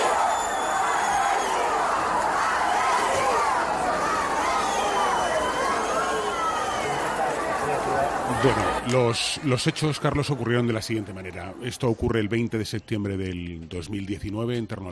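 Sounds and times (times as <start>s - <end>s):
angry crowd of hundreds protesting outside house: 0.0s - 10.1s
speech: 8.4s - 14.8s.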